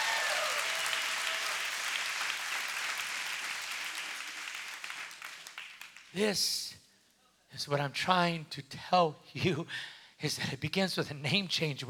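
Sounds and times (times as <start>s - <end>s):
audience applause: 0.0s - 5.9s
speech: 6.1s - 6.8s, 7.5s - 11.8s.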